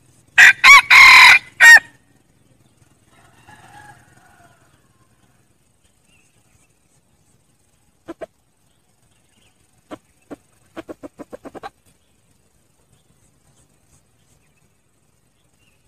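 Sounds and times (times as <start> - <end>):
red junglefowl crowing: 0.4 - 2.0, 3.1 - 5.3.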